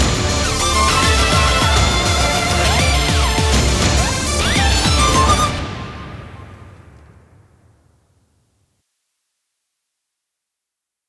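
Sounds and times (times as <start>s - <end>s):
music track at 136 BPM: 0.0s - 6.5s.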